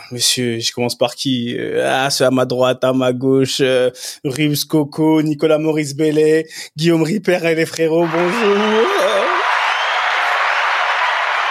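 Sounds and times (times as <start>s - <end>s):
speech: 0.1s - 9.2s
canned applause sound effect on a French show: 8.0s - 11.4s.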